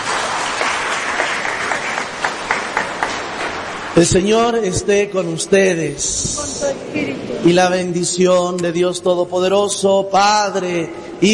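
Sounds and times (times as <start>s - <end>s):
small crowd applause for a raffle winner: 0.0s - 4.0s
speech: 4.0s - 11.3s.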